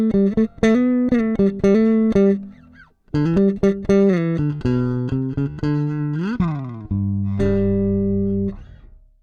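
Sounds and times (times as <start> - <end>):
bass guitar jamming: 0.0 - 9.2.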